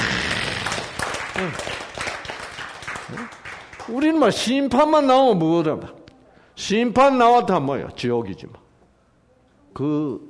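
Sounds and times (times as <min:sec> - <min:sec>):
audience applause: 0:00.0 - 0:04.2
speech: 0:01.4 - 0:01.8, 0:03.1 - 0:06.0, 0:06.6 - 0:08.6, 0:09.8 - 0:10.2.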